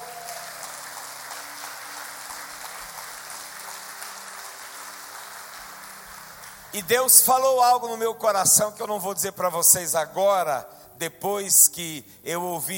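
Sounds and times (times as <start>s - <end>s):
large audience applauding: 0.0s - 7.2s
speech: 6.7s - 12.7s.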